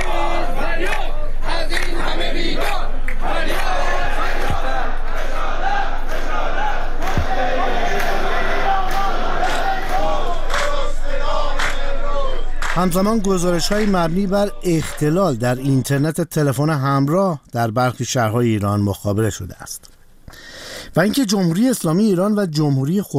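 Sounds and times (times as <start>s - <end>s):
protesters and retirees chanting in unison at a street protest: 0.0s - 15.1s
sharp claps or thumps: 7.0s - 8.2s, 8.9s - 10.8s
speech: 12.8s - 23.1s.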